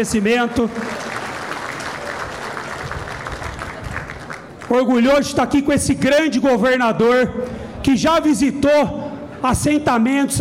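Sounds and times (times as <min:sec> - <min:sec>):
speech: 0:00.0 - 0:01.2, 0:04.7 - 0:10.3
audience applause: 0:00.4 - 0:04.7.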